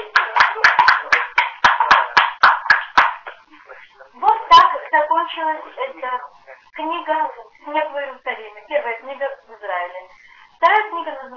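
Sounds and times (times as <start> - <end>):
audience clapping: 0.0 - 3.4
speech: 5.4 - 11.3.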